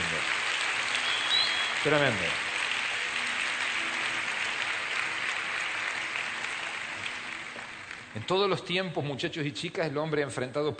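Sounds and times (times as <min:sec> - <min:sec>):
applause: 0:00.0 - 0:08.7
speech: 0:01.8 - 0:02.5, 0:08.2 - 0:10.7.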